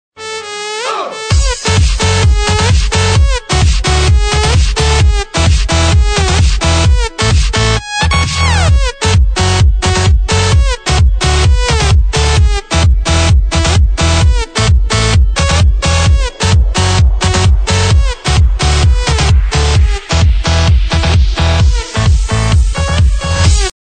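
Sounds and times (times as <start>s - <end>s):
club night ringtone: 0.2s - 23.7s.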